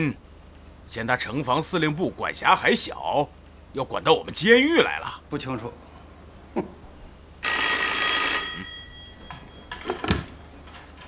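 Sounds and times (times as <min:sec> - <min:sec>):
speech: 0:00.0 - 0:00.2, 0:00.9 - 0:05.9, 0:06.6 - 0:06.8
telephone ringing: 0:07.4 - 0:10.2.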